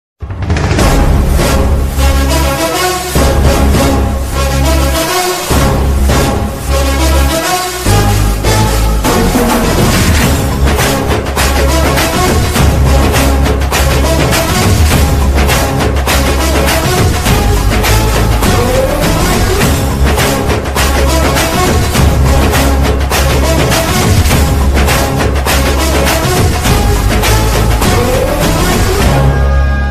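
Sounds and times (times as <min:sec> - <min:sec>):
Telugu mass background music ringtone: 0:01.0 - 0:29.9.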